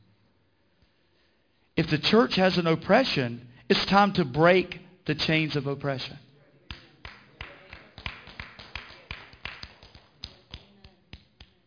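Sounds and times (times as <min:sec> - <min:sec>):
speech: 0:01.8 - 0:06.2
single person clapping: 0:06.7 - 0:11.6.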